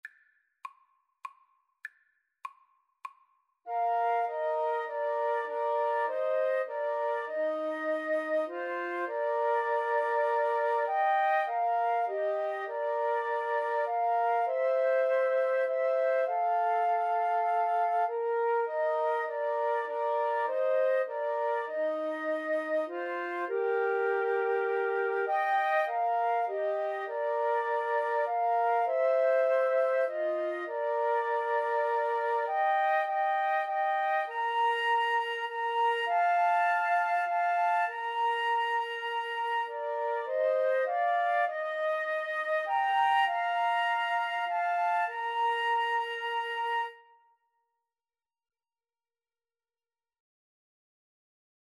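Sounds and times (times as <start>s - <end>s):
flute trio playing a hymn: 3.7s - 47.3s.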